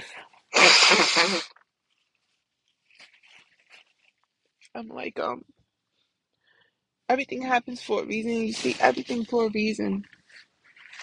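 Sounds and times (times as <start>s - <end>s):
nose blowing: 0.6s - 1.5s
speech: 0.9s - 1.6s, 4.8s - 5.6s, 7.1s - 10.5s.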